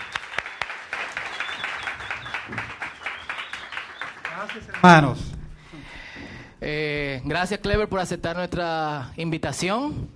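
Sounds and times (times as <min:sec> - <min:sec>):
audience applauding a guest: 0:00.0 - 0:05.4
speech: 0:04.5 - 0:05.3, 0:06.6 - 0:10.1.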